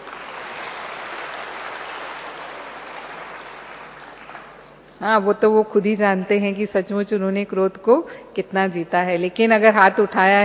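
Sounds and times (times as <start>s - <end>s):
audience applause: 0.0s - 4.9s
speech: 5.0s - 10.4s.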